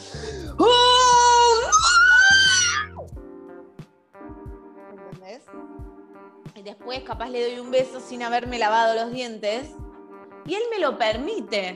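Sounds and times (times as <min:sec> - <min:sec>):
person imitating a stretching yell: 0:00.6 - 0:03.0
speech: 0:07.0 - 0:09.8, 0:10.4 - 0:11.7.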